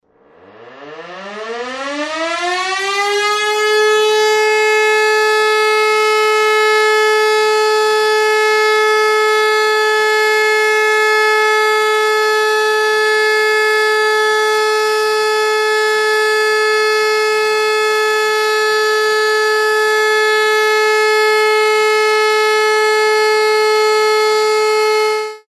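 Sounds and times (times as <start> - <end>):
alarm: 0.1 - 25.4.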